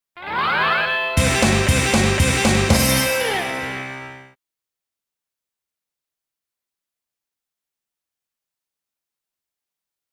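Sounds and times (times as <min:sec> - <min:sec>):
music orb: 0:00.2 - 0:04.4.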